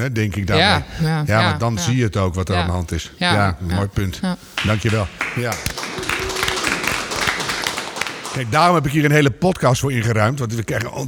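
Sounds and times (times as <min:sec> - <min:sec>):
speech: 0:00.0 - 0:06.1, 0:08.4 - 0:11.0
hands clapping in applause: 0:04.6 - 0:09.7.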